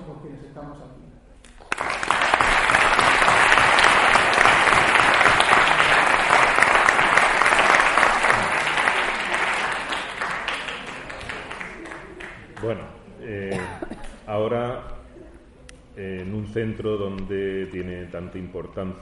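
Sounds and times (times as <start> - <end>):
speech: 0.1 - 1.2, 16.0 - 19.0
audience applause: 1.6 - 12.7.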